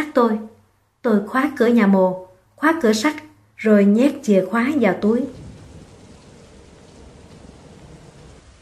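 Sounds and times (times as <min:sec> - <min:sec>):
speech: 0:00.0 - 0:05.4
heavy rain: 0:03.8 - 0:08.5
thunder: 0:05.3 - 0:08.5.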